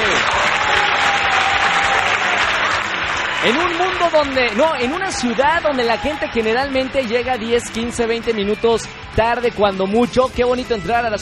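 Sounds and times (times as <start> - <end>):
applause: 0.0 - 8.9
speech: 3.4 - 11.1.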